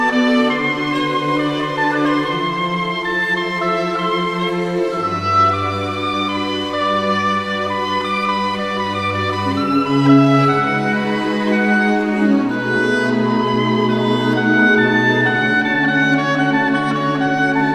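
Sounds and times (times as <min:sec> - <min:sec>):
oboe: 0:00.0 - 0:17.7
strings: 0:00.0 - 0:17.7.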